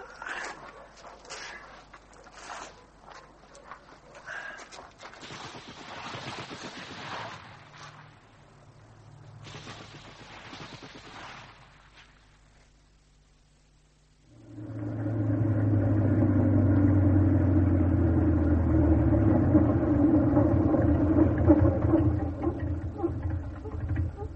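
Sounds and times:
footsteps scuffing and crunching while pushing a car along a lane: 0.2 - 5.2
engine droning with a deep hum: 8.0 - 9.8, 14.2 - 24.3
car pushed along a lane by the fields, rolling rumble: 14.3 - 24.3.

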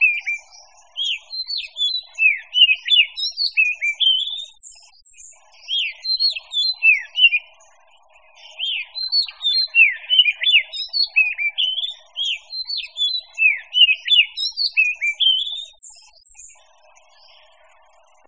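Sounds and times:
mixed birdsong with arched whistled notes and quick chirps: 0.0 - 18.2.

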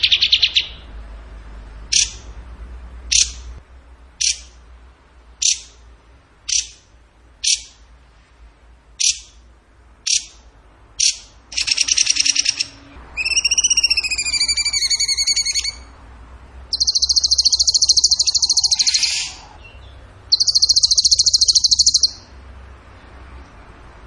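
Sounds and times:
bird song: 0.0 - 0.9, 1.9 - 2.3, 3.1 - 3.5, 4.2 - 4.6, 5.4 - 5.8, 6.5 - 7.8, 9.0 - 9.4, 10.0 - 15.9, 16.7 - 22.4.

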